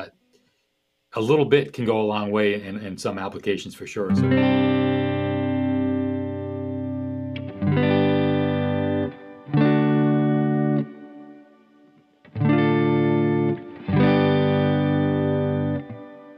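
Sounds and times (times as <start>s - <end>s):
speech: 1.2s - 4.8s
electric guitar chords through a Strymon Blue Sky V.2 shimmer reverb pedal: 4.1s - 16.3s.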